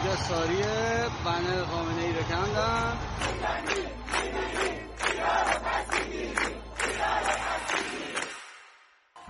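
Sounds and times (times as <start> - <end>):
speech: 0.2 - 7.3
large protest crowd chanting slogans: 2.6 - 8.7.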